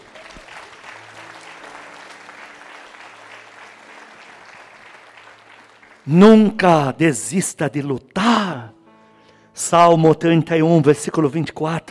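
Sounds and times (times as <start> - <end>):
audience clapping: 0.0 - 6.7
speech: 6.0 - 8.2, 9.7 - 11.8.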